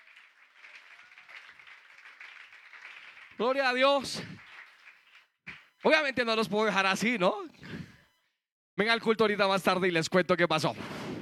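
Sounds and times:
audience applauding: 0.0 - 5.8
speech: 3.4 - 4.4, 5.8 - 7.7, 8.8 - 11.0.

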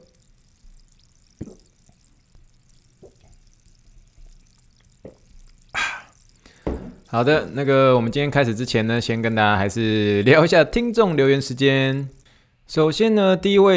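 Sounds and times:
sparkling water poured for a toast, fizzing: 0.0 - 12.4
sharp knocks: 6.6 - 7.0
speech: 7.1 - 13.7.

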